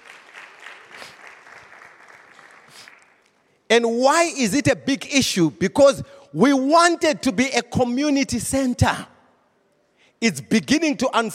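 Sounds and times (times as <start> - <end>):
audience clapping: 0.0 - 3.5
speech: 3.7 - 9.1, 10.2 - 11.3.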